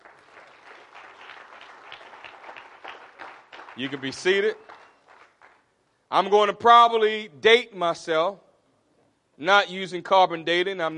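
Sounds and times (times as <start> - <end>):
audience clapping hands: 0.0 - 5.7
speech: 3.8 - 4.7, 6.1 - 8.4, 9.4 - 10.9.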